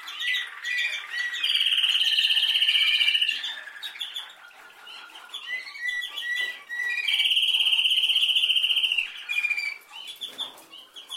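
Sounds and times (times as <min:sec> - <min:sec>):
canary singing: 0:00.0 - 0:11.1.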